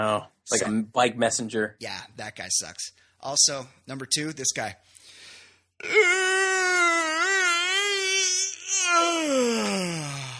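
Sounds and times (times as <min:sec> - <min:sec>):
speech: 0:00.0 - 0:04.9, 0:05.8 - 0:06.4, 0:08.7 - 0:10.3
exaggerated vocalized yawn: 0:05.8 - 0:10.3.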